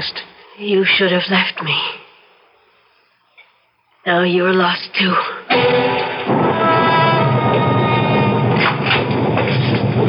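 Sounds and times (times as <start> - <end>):
speech: 0.0 - 2.0, 4.0 - 6.8
thunderstorm: 5.5 - 10.0.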